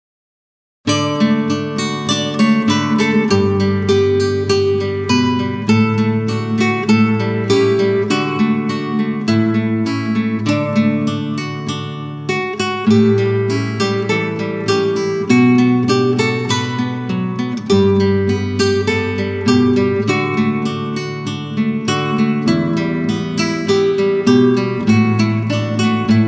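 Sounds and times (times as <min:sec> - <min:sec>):
guitar romance: 0:00.9 - 0:26.2.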